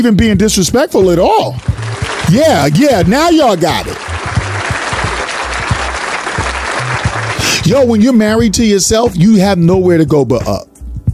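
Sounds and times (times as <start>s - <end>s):
speech: 0.0s - 1.7s, 2.3s - 4.2s, 7.7s - 10.7s
audience applause: 1.6s - 7.7s.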